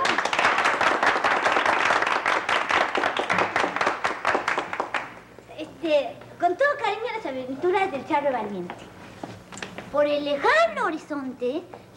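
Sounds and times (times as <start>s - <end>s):
group of people clapping: 0.0s - 5.3s
speech: 5.9s - 8.9s, 9.9s - 11.9s.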